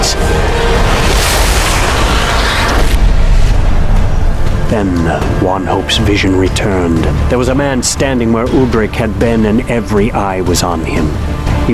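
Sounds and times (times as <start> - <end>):
lightning strike: 0.1 - 5.9
speech: 4.7 - 11.7.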